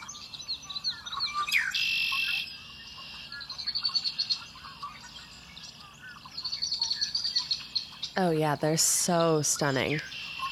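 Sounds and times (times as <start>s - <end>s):
red-winged blackbird call: 0.0s - 8.2s, 9.4s - 10.5s
speech: 8.2s - 10.2s.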